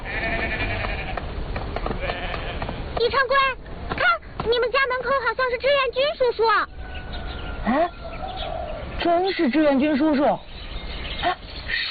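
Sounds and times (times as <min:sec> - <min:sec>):
sheep bleating while being herded home: 0:00.0 - 0:01.2, 0:02.0 - 0:02.8
rural noise: 0:00.0 - 0:11.9
speech: 0:03.0 - 0:03.6, 0:04.5 - 0:06.7, 0:07.6 - 0:08.0, 0:09.0 - 0:10.5, 0:11.2 - 0:11.9.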